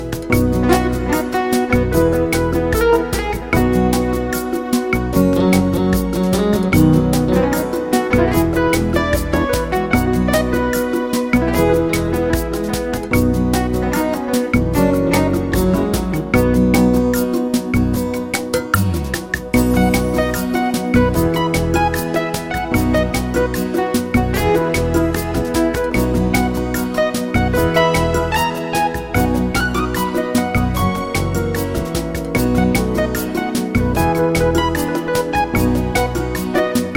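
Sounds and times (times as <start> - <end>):
unplugged ballad: 0.0 - 36.9.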